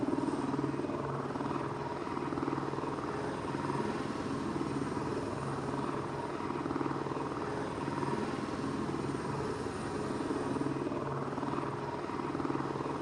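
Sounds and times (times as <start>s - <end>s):
helicopter loop: 0.0s - 13.0s.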